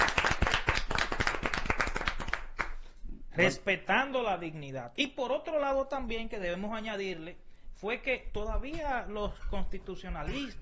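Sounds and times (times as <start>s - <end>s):
small crowd clapping: 0.0s - 3.0s
speech: 3.4s - 10.6s.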